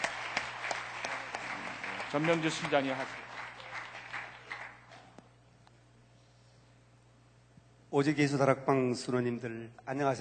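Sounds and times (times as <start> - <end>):
audience applause: 0.0 - 5.2
speech: 2.1 - 3.2, 8.0 - 10.1.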